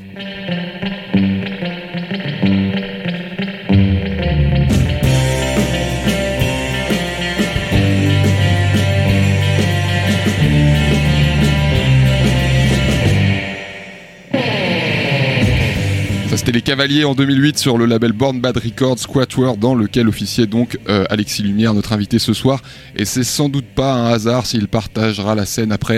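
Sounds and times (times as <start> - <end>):
instrumental surf rock with reverb-heavy electric guitars: 0.0 - 16.6
speech: 0.2 - 1.0, 16.7 - 25.9.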